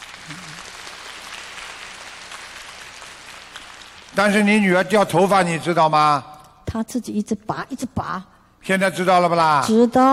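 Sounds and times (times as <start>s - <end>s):
audience applause: 0.0s - 4.9s
speech: 4.2s - 10.1s.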